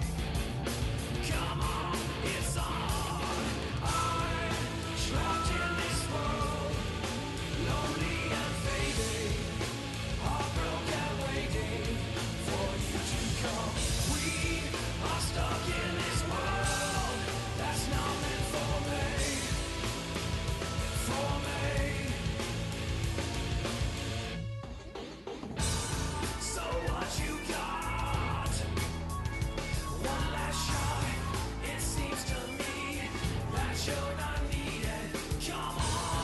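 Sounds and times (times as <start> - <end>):
metal rock song from a movie soundtrack: 0.0 - 36.2.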